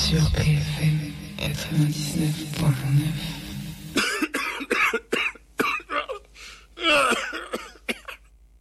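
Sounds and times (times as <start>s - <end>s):
speech: 0.1s - 3.4s
coughing: 3.9s - 8.3s.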